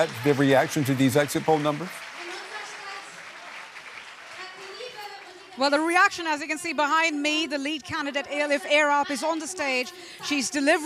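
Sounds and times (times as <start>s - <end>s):
speech: 0.0s - 2.0s, 5.6s - 10.8s
crowd cheering and applause at a Left Party election-night event in Berlin: 0.0s - 5.9s.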